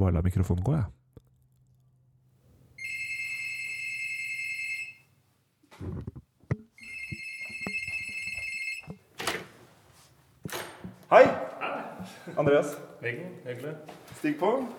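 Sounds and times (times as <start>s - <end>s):
speech: 0.0s - 1.0s, 5.8s - 6.2s, 11.1s - 11.5s, 12.3s - 14.7s
electronic doorbell ringing: 2.8s - 5.1s, 6.8s - 9.0s
dull thumps and knocks: 5.7s - 9.4s.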